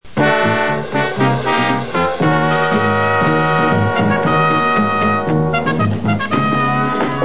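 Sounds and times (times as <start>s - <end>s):
music: 0.1s - 7.2s.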